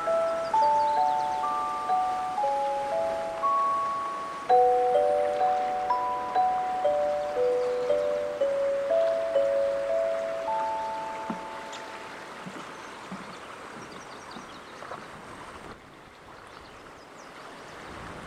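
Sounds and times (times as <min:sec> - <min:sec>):
ringing chime tones at Patagonia Lake State Park in southeast Arizona: 0:00.0 - 0:12.1
soft outdoor hiss at Patagonia Lake State Park: 0:00.0 - 0:18.2.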